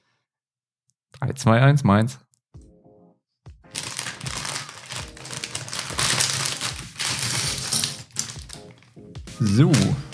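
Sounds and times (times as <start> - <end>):
speech: 1.1 - 2.3, 9.4 - 10.0
small plastic bags being torn open and handled: 3.7 - 10.1.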